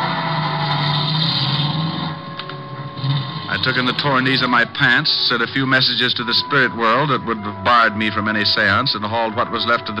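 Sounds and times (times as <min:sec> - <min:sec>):
car engine driving away: 0:00.0 - 0:04.9
speech: 0:03.6 - 0:09.9.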